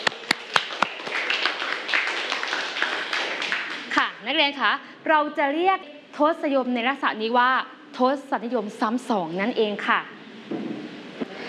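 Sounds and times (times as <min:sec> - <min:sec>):
clapping for a classmate: 0:00.0 - 0:04.0
speech: 0:04.2 - 0:10.6.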